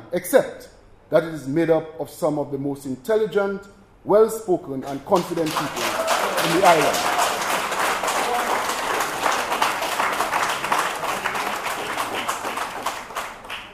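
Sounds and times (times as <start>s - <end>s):
speech: 0.1s - 7.2s
audience clapping: 4.9s - 13.7s.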